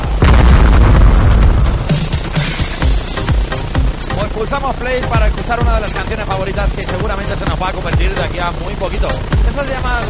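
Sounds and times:
bomb explosion sound effect: 0:00.0 - 0:03.2
speech: 0:04.5 - 0:10.0.

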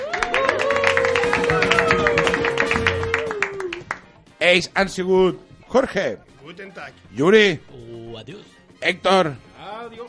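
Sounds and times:
applause: 0:00.0 - 0:04.2
speech: 0:04.5 - 0:10.0.

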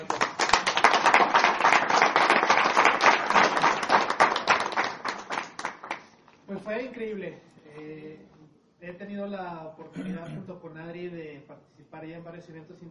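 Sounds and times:
audience applause: 0:00.0 - 0:06.1
speech: 0:06.5 - 0:12.8.

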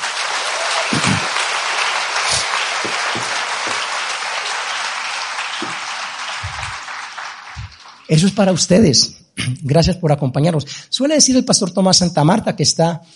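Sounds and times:
audience applause: 0:00.0 - 0:08.7
speech: 0:08.1 - 0:13.1.

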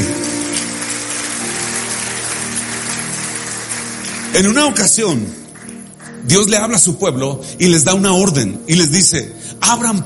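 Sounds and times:
loud audience applause: 0:00.0 - 0:06.2
speech: 0:04.4 - 0:05.4, 0:06.3 - 0:10.0.

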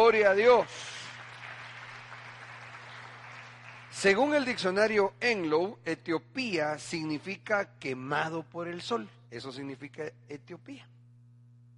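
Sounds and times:
audience applauding: 0:00.0 - 0:04.6
speech: 0:00.1 - 0:00.9, 0:04.0 - 0:10.9.

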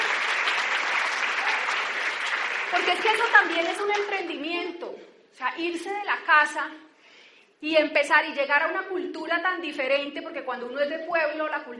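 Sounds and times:
audience applause: 0:00.0 - 0:04.2
speech: 0:02.7 - 0:06.9, 0:07.6 - 0:11.7.

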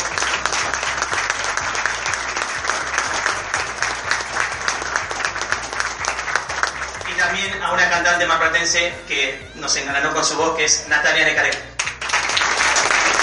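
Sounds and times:
audience applause: 0:00.0 - 0:07.3, 0:11.8 - 0:13.2
speech: 0:08.0 - 0:11.7.

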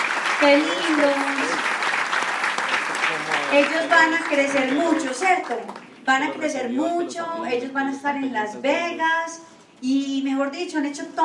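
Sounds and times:
audience applause: 0:00.0 - 0:05.8
speech: 0:00.4 - 0:01.8, 0:03.1 - 0:11.2.

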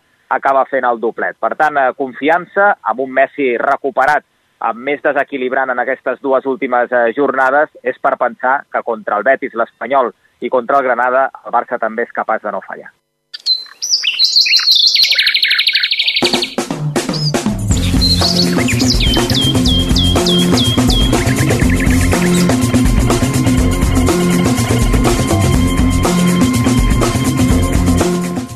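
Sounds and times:
speech: 0:00.3 - 0:13.0
person whistling birdlike trills and chirps: 0:13.4 - 0:22.7
loud rhythmic melody: 0:16.2 - 0:28.5.

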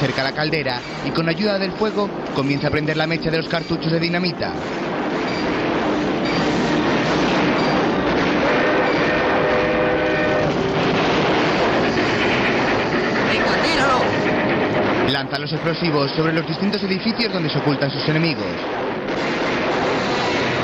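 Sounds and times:
speech: 0:00.0 - 0:04.9, 0:15.2 - 0:18.8
sustained tonal lines: 0:00.0 - 0:20.6
train set in motion by its engineers in a 1973 western film: 0:00.0 - 0:20.6.

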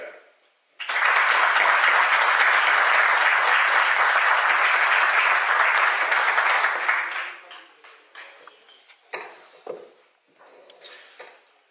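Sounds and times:
audience applause: 0:00.8 - 0:08.3.

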